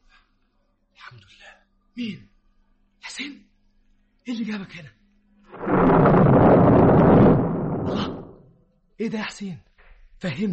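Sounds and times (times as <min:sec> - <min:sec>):
speech: 0:01.1 - 0:02.3, 0:03.2 - 0:03.5, 0:04.2 - 0:05.0, 0:09.0 - 0:10.5
car exploding: 0:05.5 - 0:08.5.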